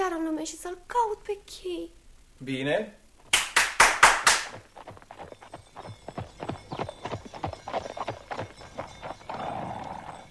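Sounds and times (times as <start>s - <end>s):
speech: 0.1s - 3.0s
horse hooves clip-clopping pulling a new golden carriage: 4.1s - 10.2s.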